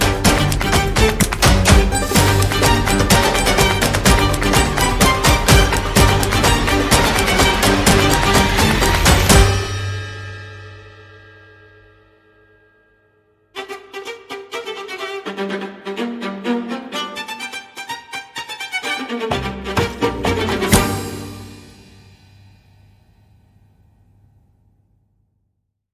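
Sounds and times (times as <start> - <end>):
light percussion: 0.0 - 15.0, 18.4 - 23.7.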